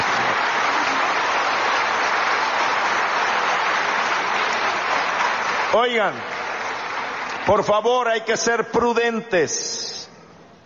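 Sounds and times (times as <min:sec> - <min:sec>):
audience applause: 0:00.0 - 0:08.2
speech: 0:05.8 - 0:06.4, 0:07.4 - 0:09.8.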